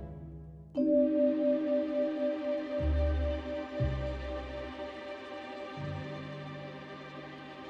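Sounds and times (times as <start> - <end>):
music loop without harp: 0.8 - 6.3.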